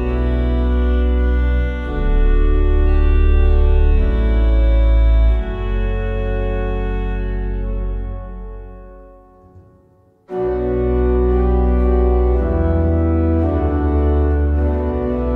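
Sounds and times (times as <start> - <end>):
organ playing a hymn: 0.0 - 15.3.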